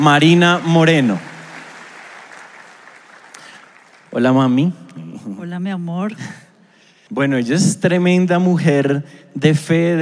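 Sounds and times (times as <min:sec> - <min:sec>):
speech: 0:00.0 - 0:01.3, 0:04.1 - 0:06.4, 0:07.1 - 0:10.0
audience applause: 0:00.0 - 0:04.2.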